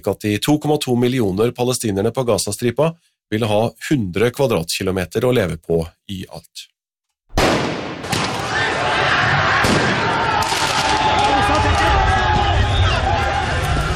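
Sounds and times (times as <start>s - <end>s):
speech: 0.0s - 6.8s
sharp cracks: 7.3s - 8.6s, 9.6s - 11.1s
riotous football crowd in France celebrating Paris Saint-Germain Champions League win: 8.1s - 13.9s.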